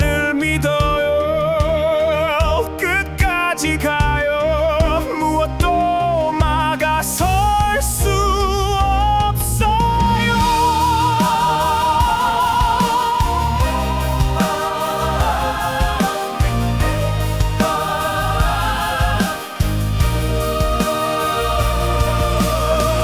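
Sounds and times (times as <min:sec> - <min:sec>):
musical anthem: 0:00.0 - 0:23.0.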